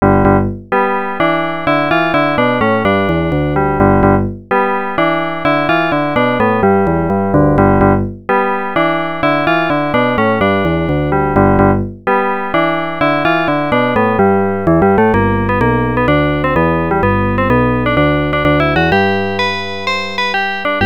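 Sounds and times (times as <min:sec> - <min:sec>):
arcade game main theme music: 0:00.0 - 0:20.8.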